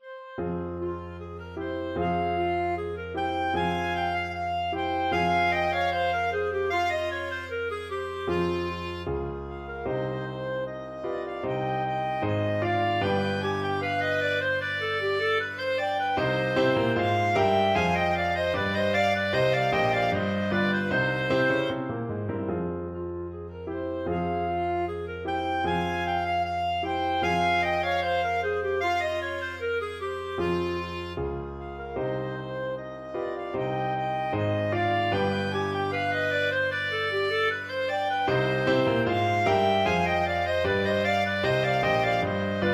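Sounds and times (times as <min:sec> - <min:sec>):
clarinet duet: 0:00.0 - 0:42.7.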